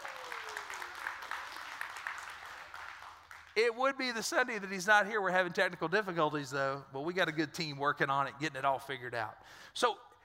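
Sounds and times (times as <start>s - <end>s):
audience applause: 0.0s - 3.6s
speech: 3.6s - 10.1s.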